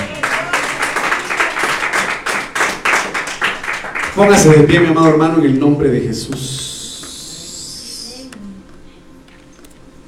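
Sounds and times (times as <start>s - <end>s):
audience applauding: 0.0s - 4.9s
speech: 4.2s - 6.6s.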